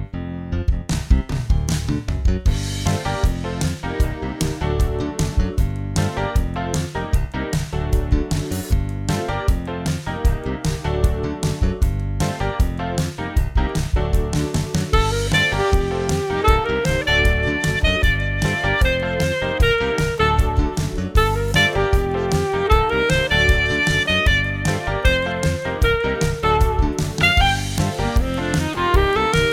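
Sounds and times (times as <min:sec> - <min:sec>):
piano: 0:00.0 - 0:29.5
drums: 0:00.6 - 0:29.5
funky saxophone in E-flat and B-flat: 0:14.9 - 0:29.5.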